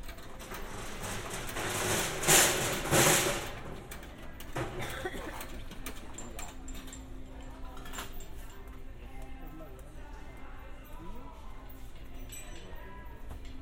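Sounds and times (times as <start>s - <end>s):
rustling and clattering while shopping in a hardware store: 0.0s - 7.1s.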